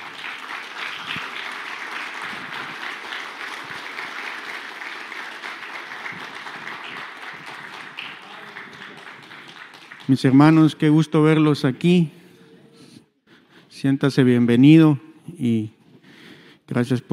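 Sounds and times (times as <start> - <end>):
audience applause: 0.0 - 10.6
speech: 10.1 - 12.2, 13.8 - 15.8, 16.7 - 17.1.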